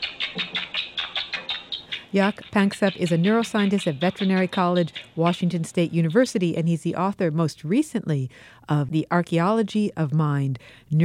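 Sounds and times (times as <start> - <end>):
rats chirping during roughhouse play: 0.0 - 6.6
speech: 2.1 - 11.0.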